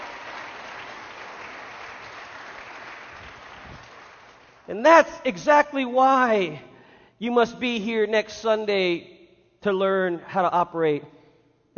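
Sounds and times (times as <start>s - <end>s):
audience clapping hands: 0.0s - 4.7s
speech: 4.7s - 11.2s.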